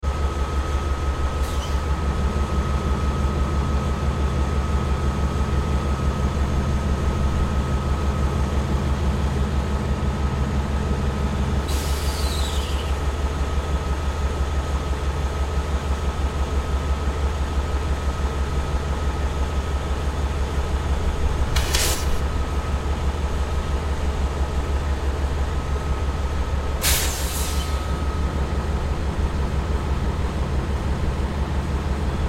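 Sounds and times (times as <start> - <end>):
locomotive idling: 0.0 - 32.2.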